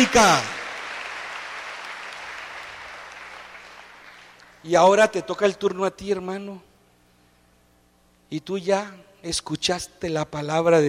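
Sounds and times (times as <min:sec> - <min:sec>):
speech: 0:00.0 - 0:00.6, 0:04.6 - 0:06.7, 0:08.3 - 0:10.8
audience applause: 0:00.0 - 0:04.6.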